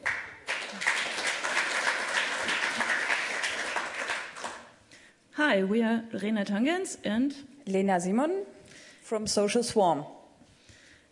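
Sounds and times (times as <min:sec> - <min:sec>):
crowd applauding: 0:00.0 - 0:04.7
speech: 0:05.5 - 0:10.2.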